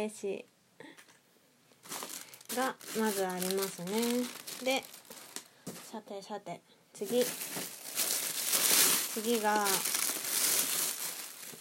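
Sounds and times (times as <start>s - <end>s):
speech: 0.0s - 0.5s, 2.6s - 5.0s, 5.7s - 7.7s, 9.2s - 9.9s
snack bag crinkling as it is opened: 1.8s - 5.6s, 7.0s - 11.5s.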